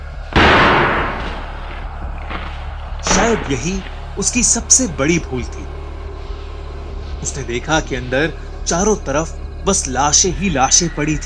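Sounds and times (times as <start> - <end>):
cave door being broken open: 0.4 - 3.8
speech: 3.2 - 5.8, 7.2 - 11.2.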